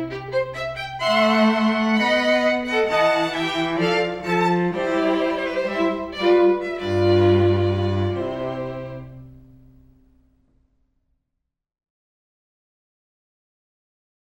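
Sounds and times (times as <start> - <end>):
quartet playing a wedding march: 0.0 - 9.6.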